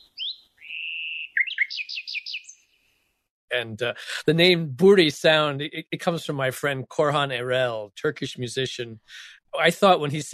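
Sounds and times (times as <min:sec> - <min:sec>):
male nightingale song note: 0:00.0 - 0:02.8
speech: 0:03.5 - 0:10.3.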